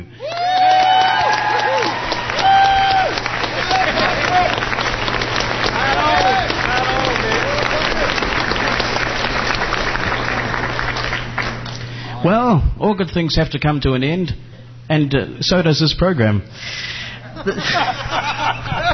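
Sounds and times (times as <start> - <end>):
cheers and whoops: 0.2 - 4.6, 5.8 - 8.2
audience applause: 0.2 - 12.0
laughter: 3.4 - 9.4, 17.2 - 18.9
speech: 12.2 - 18.9.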